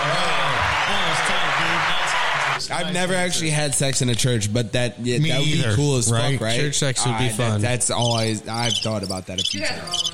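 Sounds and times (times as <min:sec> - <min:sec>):
round of applause for a party game contestant: 0:00.0 - 0:02.6
speech: 0:02.8 - 0:10.1.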